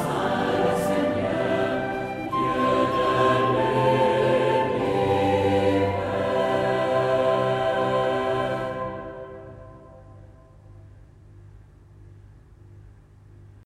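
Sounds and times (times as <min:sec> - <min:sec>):
Palm Sunday chant: 0:00.0 - 0:10.8.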